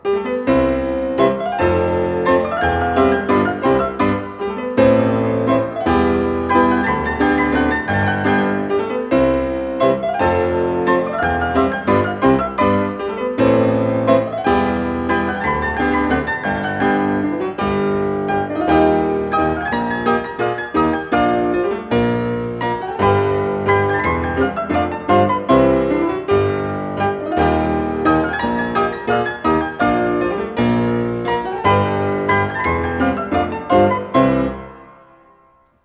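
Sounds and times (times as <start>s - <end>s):
waltz for piano four hands in C Major: 0.0s - 35.8s.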